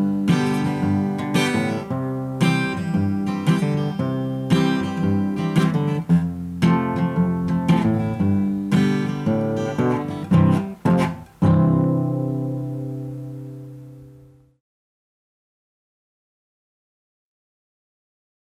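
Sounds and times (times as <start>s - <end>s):
instrumental music: 0.0s - 14.6s.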